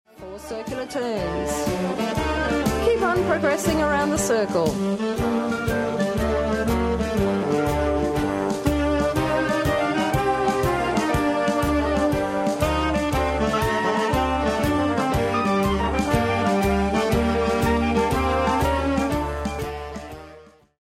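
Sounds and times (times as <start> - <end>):
barn dance music: 0.2 - 20.5.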